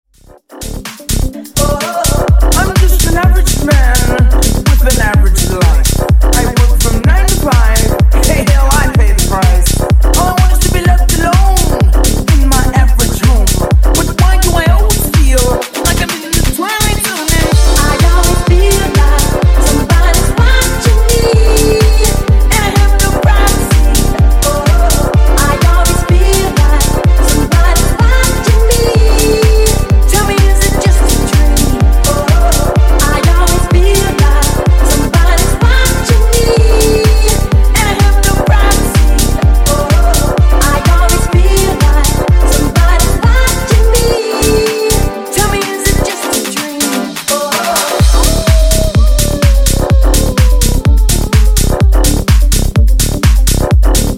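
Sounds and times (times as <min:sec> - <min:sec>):
disco funk music: 0:00.2 - 0:54.1.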